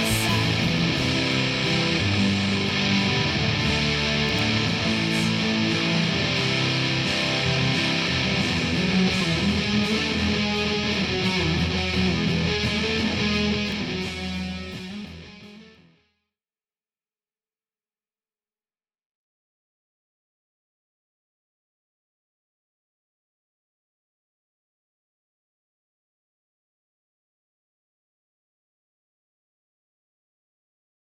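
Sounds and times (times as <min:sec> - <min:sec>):
layered electric guitar through op-amp without compression: 0:00.0 - 0:16.1.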